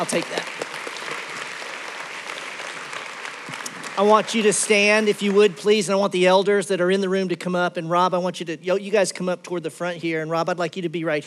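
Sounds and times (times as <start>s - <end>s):
speech: 0.0s - 0.7s, 4.0s - 11.2s
audience clapping: 0.0s - 6.5s.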